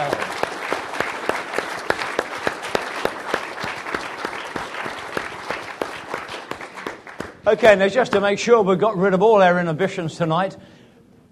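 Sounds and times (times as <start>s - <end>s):
church congregation clapping: 0.0s - 8.3s
speech: 7.4s - 10.7s.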